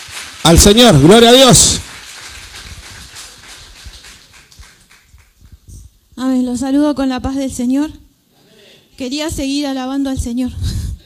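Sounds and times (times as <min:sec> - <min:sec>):
audience applauding: 0:00.0 - 0:05.6
speech: 0:00.4 - 0:01.9, 0:06.5 - 0:08.0, 0:09.0 - 0:10.8.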